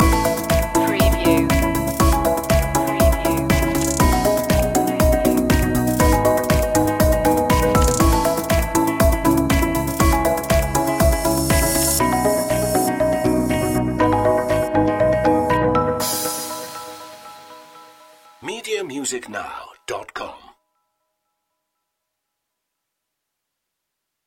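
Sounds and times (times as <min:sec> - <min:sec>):
musical notes: 0:00.0 - 0:20.4.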